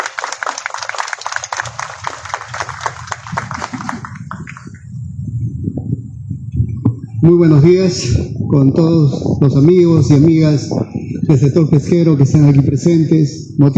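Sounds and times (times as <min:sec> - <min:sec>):
crowd applauding: 0:00.0 - 0:04.9
speech: 0:07.2 - 0:13.7.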